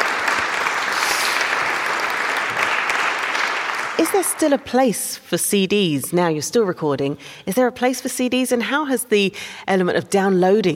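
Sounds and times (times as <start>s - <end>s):
audience applause: 0.0s - 4.6s
speech: 4.0s - 10.7s.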